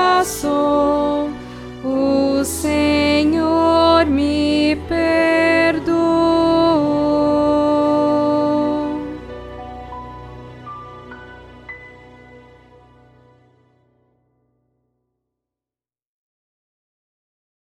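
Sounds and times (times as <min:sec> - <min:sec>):
soprano singing: 0:00.0 - 0:13.5.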